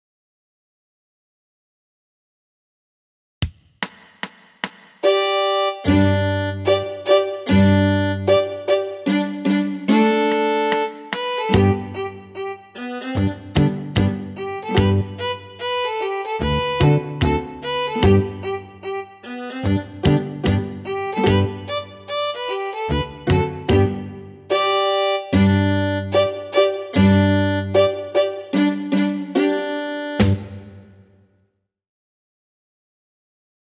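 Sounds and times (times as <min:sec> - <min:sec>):
American fiddle tune: 0:05.0 - 0:31.0.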